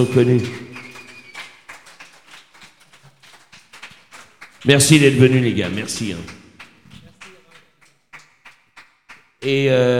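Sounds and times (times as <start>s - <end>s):
speech: 0.0s - 0.6s, 4.6s - 6.4s, 9.4s - 9.9s
audience applause: 0.0s - 9.4s.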